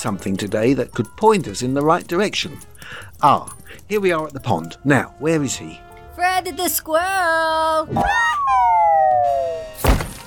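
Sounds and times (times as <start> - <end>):
speech: 0.0 - 9.9
crashing down from a tree: 9.8 - 10.2.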